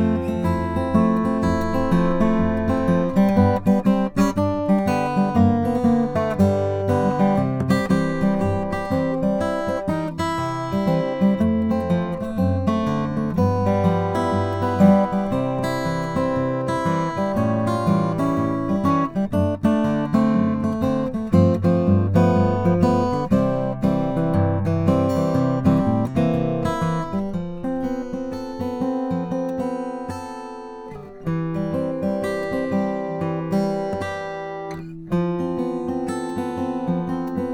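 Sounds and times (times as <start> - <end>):
mahogany acoustic guitar: 0.0 - 37.5.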